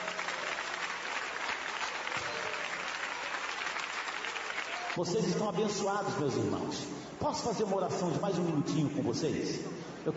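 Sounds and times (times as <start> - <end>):
church congregation clapping hands in praise: 0.0 - 6.2
speech: 5.0 - 10.1.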